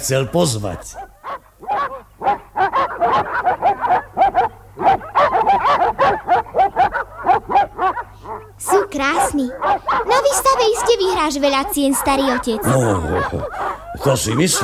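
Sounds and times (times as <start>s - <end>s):
speech: 0.0s - 1.1s, 9.0s - 14.6s
several dogs barking: 0.0s - 14.6s
laughter: 11.9s - 14.6s.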